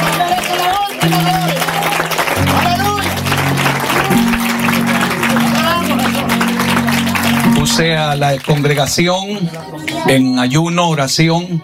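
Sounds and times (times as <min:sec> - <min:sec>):
congregation clapping during a church worship service: 0:00.0 - 0:10.6
low sustained musical tone: 0:02.4 - 0:08.5
speech: 0:07.8 - 0:11.6.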